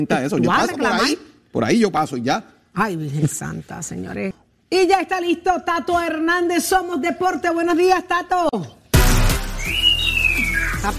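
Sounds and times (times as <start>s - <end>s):
speech: 0.0s - 8.8s, 10.8s - 10.9s
pet bird screeching: 9.6s - 10.9s.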